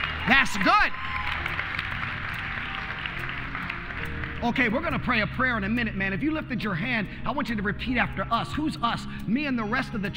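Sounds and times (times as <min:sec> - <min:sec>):
audience clapping: 0:00.0 - 0:05.5
speech: 0:00.3 - 0:01.2, 0:04.4 - 0:10.1.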